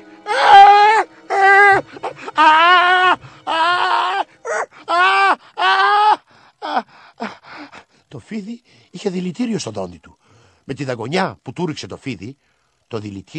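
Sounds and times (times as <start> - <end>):
loud scream of pain: 0.2 - 6.9
speech: 1.8 - 3.3, 8.4 - 13.3.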